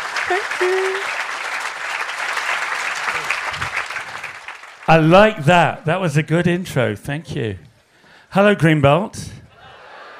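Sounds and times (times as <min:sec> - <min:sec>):
audience applause at the Greenbelt festival: 0:00.0 - 0:05.3
speech: 0:00.3 - 0:01.2, 0:04.9 - 0:07.6, 0:08.3 - 0:09.3.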